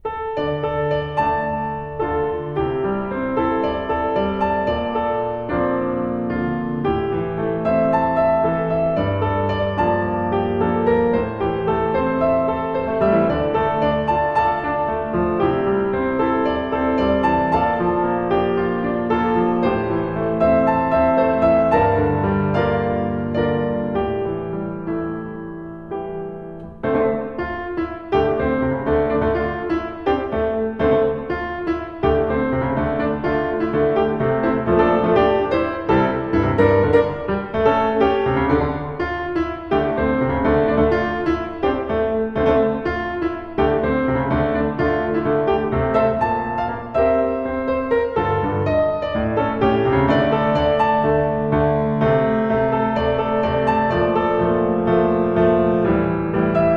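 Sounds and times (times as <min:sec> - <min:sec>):
piano: 0:00.0 - 0:56.7.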